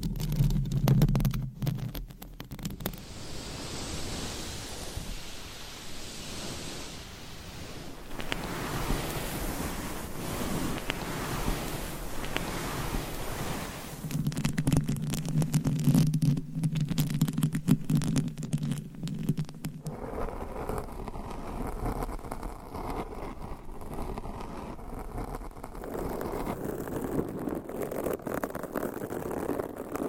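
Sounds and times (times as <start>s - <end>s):
microphone scratching: 0.0s - 30.0s
low rumbling bursts: 2.8s - 14.1s.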